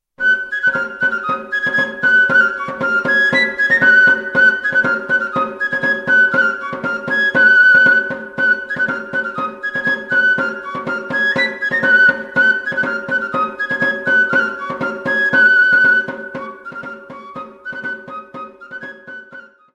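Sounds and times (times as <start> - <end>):
Basque folk dance music from Spain: 0.0 - 19.7.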